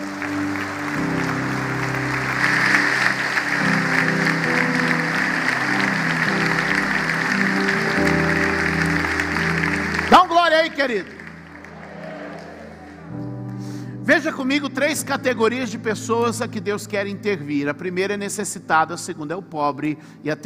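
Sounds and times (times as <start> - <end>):
audience applause: 0.0 - 13.3
organ or keyboard chords: 0.0 - 20.2
speech: 10.8 - 11.2, 14.2 - 20.4.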